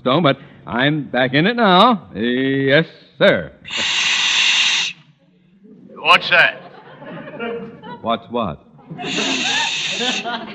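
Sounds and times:
speech: 0.0s - 3.9s, 6.0s - 10.5s
person hissing through teeth: 3.7s - 5.1s, 9.0s - 10.4s
laughter: 5.6s - 10.5s.

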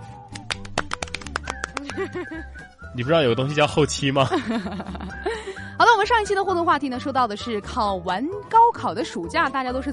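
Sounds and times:
applause: 0.3s - 2.2s
laughter: 1.8s - 2.6s, 4.1s - 5.6s
speech: 1.8s - 5.2s, 6.0s - 9.9s.

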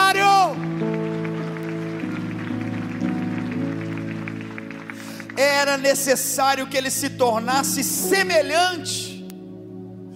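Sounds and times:
audience applause: 0.0s - 6.6s
speech: 5.4s - 9.2s.

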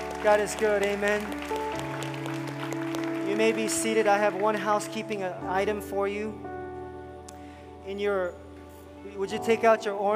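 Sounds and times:
audience clapping: 0.0s - 5.2s
speech: 0.2s - 1.9s, 3.4s - 6.5s, 7.9s - 8.4s, 9.0s - 10.1s.

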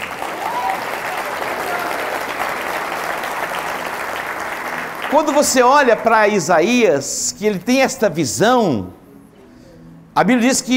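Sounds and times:
audience applauding: 0.0s - 6.6s
speech: 5.1s - 9.0s, 10.2s - 10.7s.

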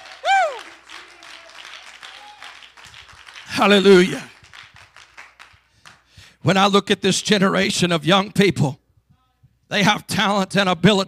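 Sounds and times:
church congregation clapping hands during a service: 0.0s - 6.4s
speech: 3.6s - 4.3s, 6.4s - 8.8s, 9.7s - 11.0s.

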